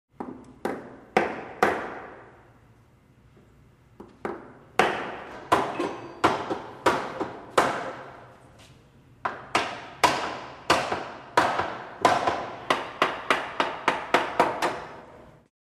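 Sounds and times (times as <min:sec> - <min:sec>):
hammer hitting nail into wood indoors: 0:00.2 - 0:02.2, 0:04.0 - 0:08.2, 0:09.2 - 0:15.0.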